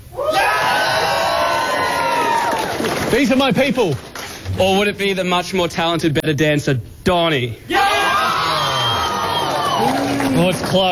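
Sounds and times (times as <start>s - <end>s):
audience cheering, whooping and yelling for a performer at a live show: 0.1s - 3.0s, 7.7s - 10.8s
speech: 3.1s - 7.9s, 10.4s - 10.9s.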